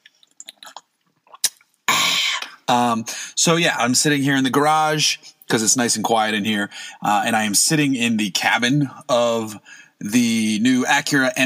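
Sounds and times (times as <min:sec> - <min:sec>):
sipping iced coffee: 0:00.0 - 0:02.6
speech: 0:02.7 - 0:11.4.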